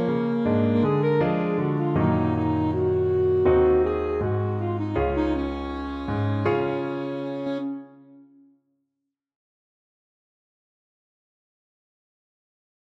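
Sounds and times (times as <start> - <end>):
saxophone: 0.0 - 8.6.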